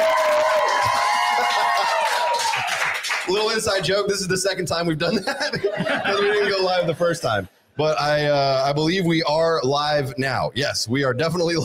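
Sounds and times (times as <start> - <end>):
shrill high whoops: 0.0 - 2.8
studio audience at a live comedy show in Austin, Texas cheering: 0.0 - 3.8
speech: 3.3 - 11.6
laughter: 5.0 - 7.4.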